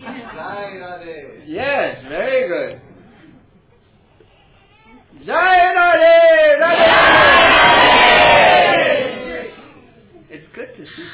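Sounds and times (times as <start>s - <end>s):
speech: 0.2s - 2.9s, 5.1s - 6.9s
audience at a Krishna devotional gathering cheering and shouting: 6.6s - 9.5s.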